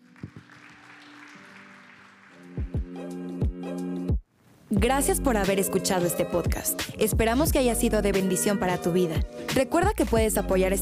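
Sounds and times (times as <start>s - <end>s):
audience applause: 0.0s - 2.9s
speech: 4.7s - 10.8s.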